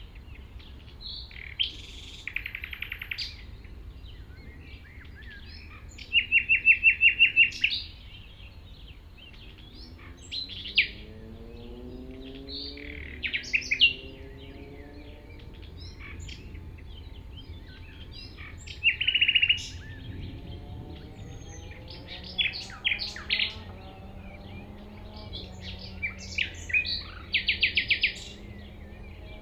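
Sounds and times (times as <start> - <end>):
common nightingale song: 0.0 - 29.4.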